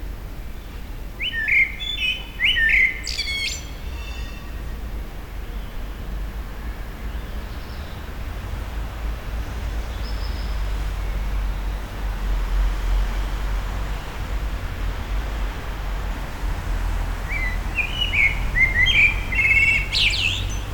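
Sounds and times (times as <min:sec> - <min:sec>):
Common blackbird fluty warbled song: 0:01.2 - 0:03.8, 0:17.2 - 0:20.7
low rumble of passing rail traffic: 0:03.6 - 0:20.7.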